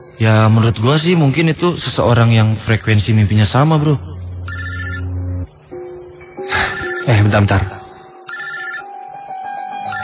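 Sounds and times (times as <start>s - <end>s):
speech: 0.2s - 4.1s, 7.1s - 7.8s
telephone ringing with a call from an unknown number: 4.5s - 5.2s, 6.5s - 7.2s, 8.3s - 8.9s, 9.8s - 10.0s.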